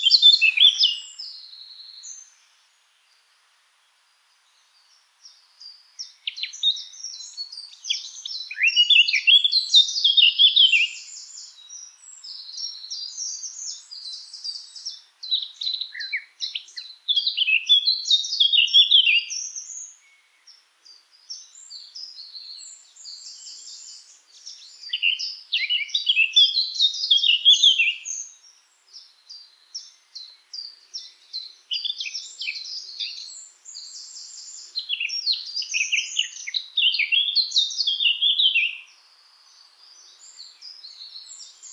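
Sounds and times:
Eurasian blackcap singing: 0:00.0 - 0:01.3, 0:05.6 - 0:20.0, 0:21.3 - 0:28.4, 0:29.0 - 0:38.9
hiss: 0:00.0 - 0:41.7.

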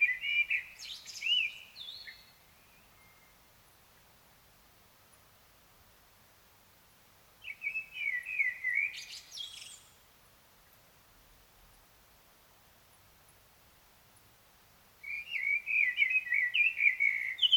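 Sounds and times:
Common blackbird singing: 0:00.0 - 0:03.4, 0:07.4 - 0:10.0, 0:15.0 - 0:17.5.

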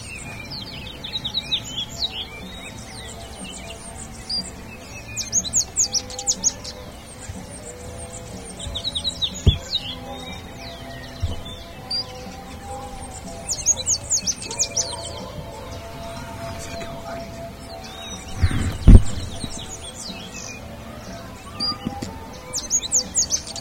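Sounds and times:
birds chirping: 0:00.0 - 0:23.5
soft hum: 0:00.0 - 0:23.5
loud low thump: 0:18.4 - 0:19.7.

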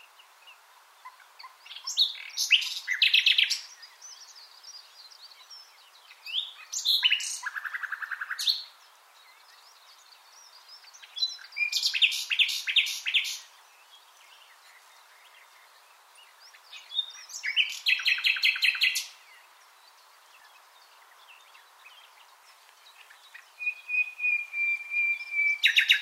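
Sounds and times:
common nightingale singing: 0:00.0 - 0:26.0.

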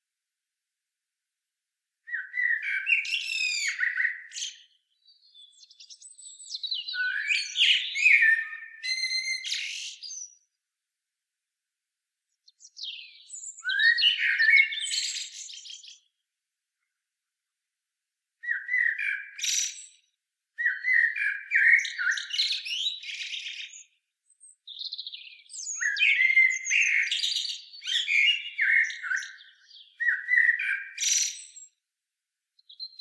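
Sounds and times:
common blackbird singing: 0:02.1 - 0:10.5, 0:12.4 - 0:16.1, 0:18.4 - 0:20.0, 0:20.6 - 0:31.7, 0:32.6 - 0:32.9.

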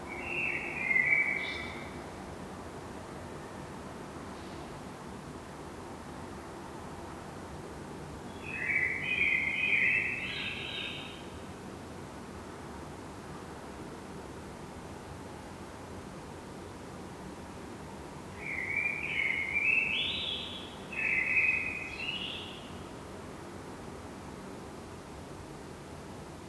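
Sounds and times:
Eurasian blackbird song: 0:00.1 - 0:02.0, 0:08.3 - 0:11.3, 0:18.4 - 0:22.9.

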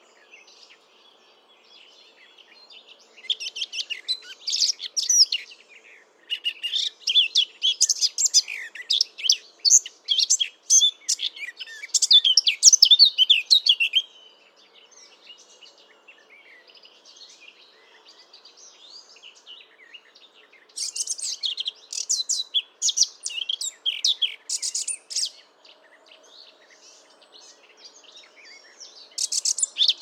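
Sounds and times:
Eurasian blackcap singing: 0:03.1 - 0:05.6, 0:06.3 - 0:14.3, 0:18.4 - 0:25.5, 0:26.4 - 0:29.9.

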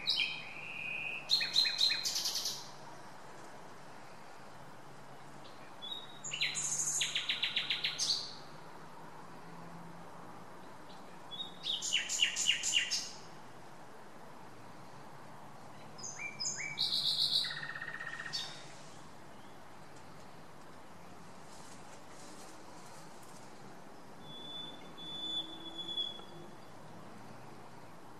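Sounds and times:
Common nightingale song: 0:00.0 - 0:03.1, 0:03.9 - 0:08.6, 0:10.6 - 0:13.6, 0:15.6 - 0:21.4, 0:23.7 - 0:28.1.

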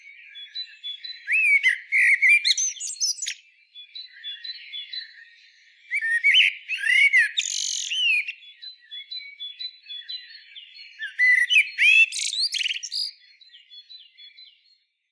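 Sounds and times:
common blackbird singing: 0:00.0 - 0:14.9
other birds high tones: 0:01.2 - 0:03.4, 0:06.0 - 0:08.3, 0:11.1 - 0:13.1.

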